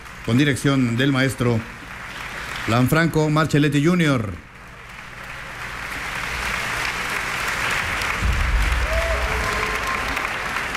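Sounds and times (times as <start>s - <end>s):
concert audience applause: 0.0s - 10.7s
speech: 0.2s - 1.8s, 2.6s - 4.5s.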